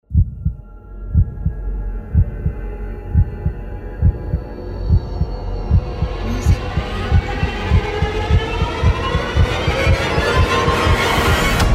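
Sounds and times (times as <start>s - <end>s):
heartbeat: 0.0s - 11.6s.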